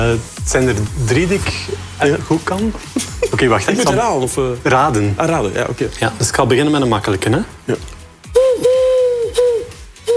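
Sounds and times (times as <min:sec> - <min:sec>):
speech: 0:00.1 - 0:07.9
human voice imitating a dove cooing: 0:08.3 - 0:10.1.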